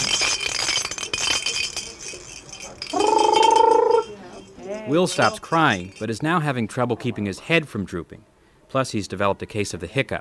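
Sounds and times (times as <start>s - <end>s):
baby noisemakers rattling: 0.0s - 6.3s
speech: 4.9s - 10.2s.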